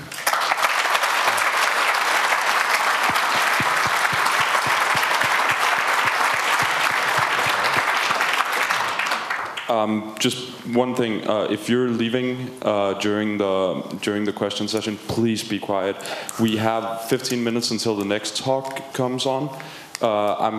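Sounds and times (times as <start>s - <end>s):
audience applause: 0.0s - 9.7s
speech: 9.7s - 20.5s.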